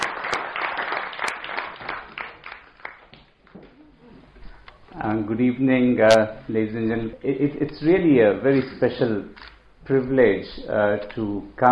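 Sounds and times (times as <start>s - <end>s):
audience applause welcoming a speaker at the NSW Parliament: 0.0s - 3.2s
speech: 5.0s - 11.7s.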